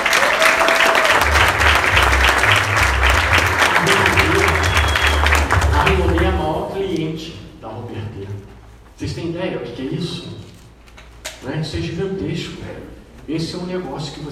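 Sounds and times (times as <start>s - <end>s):
audience applause: 0.0s - 6.6s
speech: 9.4s - 10.2s, 11.6s - 14.3s.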